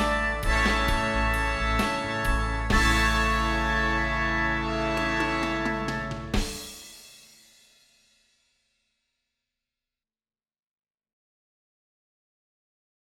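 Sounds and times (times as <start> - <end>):
horns playing in fifths: 0.0 - 6.8.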